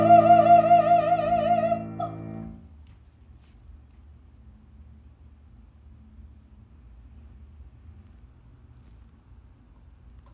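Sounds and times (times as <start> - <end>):
soprano singing: 0.0 - 2.6.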